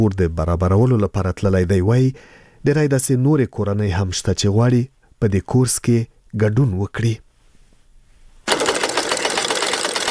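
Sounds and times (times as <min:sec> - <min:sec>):
speech: 0:00.0 - 0:07.2
sewing machine running in an embroidery class: 0:08.5 - 0:10.0.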